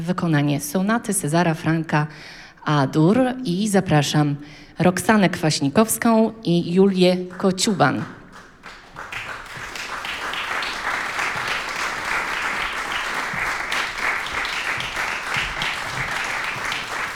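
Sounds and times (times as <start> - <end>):
speech: 0.0 - 8.2
audience applause: 8.3 - 17.1.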